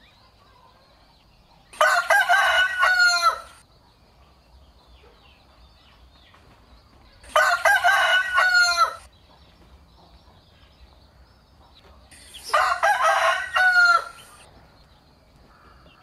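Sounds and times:
rooster crowing: 0:01.8 - 0:03.6, 0:07.2 - 0:09.1, 0:12.4 - 0:14.5.

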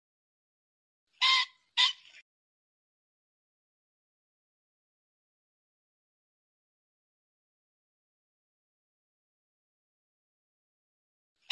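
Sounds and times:
pheasant squawking: 0:01.2 - 0:02.2.

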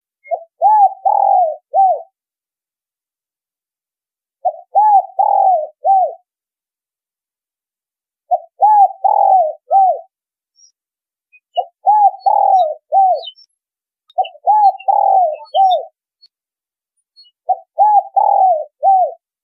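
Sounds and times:
spotted dove cooing: 0:00.2 - 0:02.1, 0:04.4 - 0:06.2, 0:08.3 - 0:10.1, 0:11.6 - 0:13.4, 0:14.1 - 0:16.0, 0:17.4 - 0:19.2.

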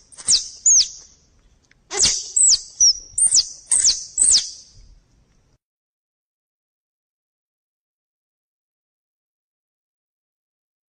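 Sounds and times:
squirrel calls: 0:00.0 - 0:01.1, 0:01.9 - 0:04.8.

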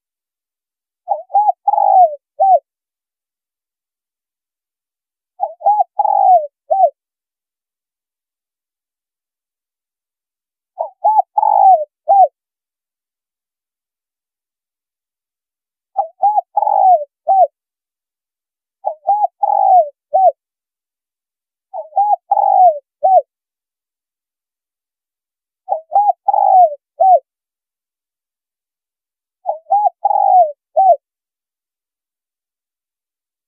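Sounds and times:
spotted dove cooing: 0:01.1 - 0:02.6, 0:05.4 - 0:07.0, 0:10.8 - 0:12.3, 0:16.0 - 0:17.6, 0:18.8 - 0:20.4, 0:21.7 - 0:23.3, 0:25.7 - 0:27.3, 0:29.4 - 0:31.0.

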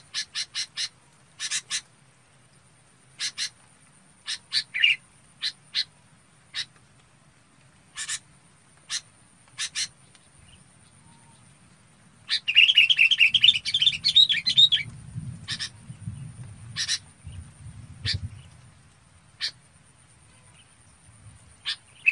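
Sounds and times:
red-whiskered bulbul chirping calls: 0:00.0 - 0:01.9, 0:03.1 - 0:03.6, 0:04.2 - 0:05.9, 0:06.5 - 0:06.8, 0:07.9 - 0:08.2, 0:08.8 - 0:11.5, 0:12.2 - 0:18.6, 0:21.5 - 0:22.1.

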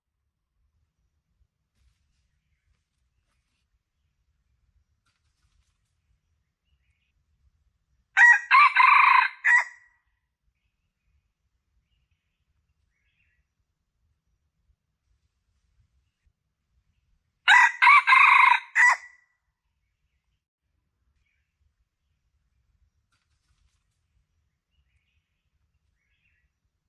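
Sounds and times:
Red junglefowl crowing: 0:08.2 - 0:09.8, 0:17.5 - 0:19.2.

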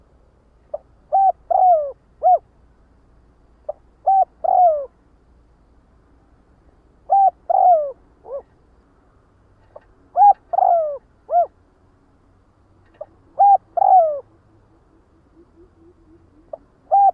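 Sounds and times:
spotted dove cooing: 0:00.7 - 0:02.5, 0:03.7 - 0:05.0, 0:07.0 - 0:08.5, 0:09.7 - 0:11.6, 0:12.9 - 0:17.1.

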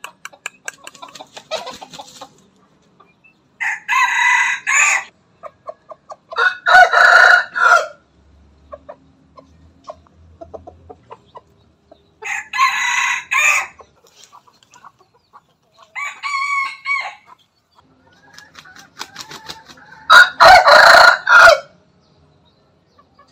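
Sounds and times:
Bangkok chicken clucking: 0:00.0 - 0:07.8, 0:08.5 - 0:21.3, 0:22.3 - 0:23.2
Bangkok rooster crowing: 0:03.6 - 0:05.1, 0:06.4 - 0:08.0, 0:12.2 - 0:13.8, 0:16.0 - 0:17.3, 0:19.2 - 0:21.7.

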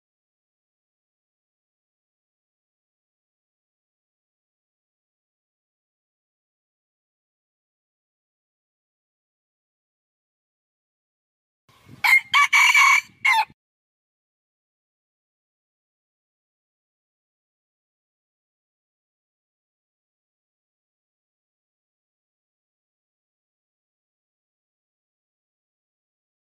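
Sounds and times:
red junglefowl crowing: 0:12.0 - 0:13.6.

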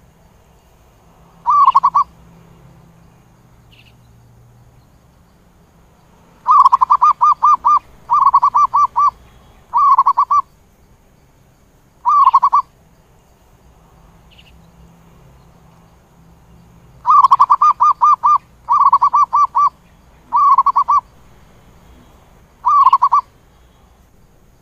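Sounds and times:
zebra dove cooing: 0:01.4 - 0:02.1, 0:06.4 - 0:10.5, 0:12.0 - 0:12.7, 0:17.0 - 0:21.1, 0:21.9 - 0:23.3.

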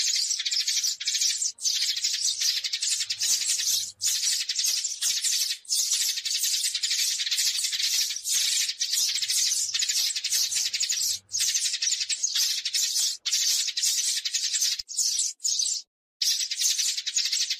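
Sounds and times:
sparrows chirping: 0:00.0 - 0:17.5.

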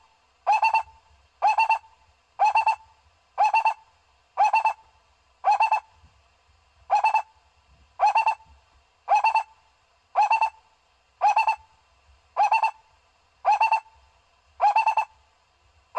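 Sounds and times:
owl hooting: 0:00.4 - 0:03.8, 0:04.4 - 0:04.8, 0:05.4 - 0:05.9, 0:06.9 - 0:07.4, 0:08.0 - 0:08.5, 0:09.1 - 0:09.6, 0:10.2 - 0:10.6, 0:11.2 - 0:11.7, 0:12.4 - 0:14.0, 0:14.6 - 0:15.2.

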